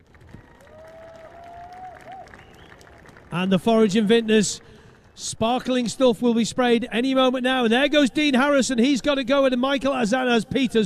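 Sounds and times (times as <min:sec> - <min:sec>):
crowd applauding at race podium: 0:00.0 - 0:05.2
speech: 0:03.3 - 0:10.8.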